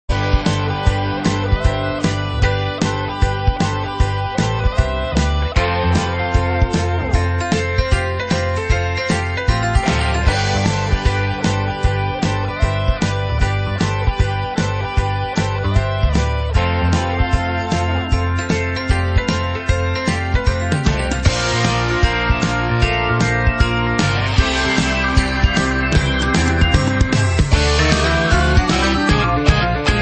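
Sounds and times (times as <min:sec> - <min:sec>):
glam rock music with Hammond organ: 0:00.1 - 0:29.9.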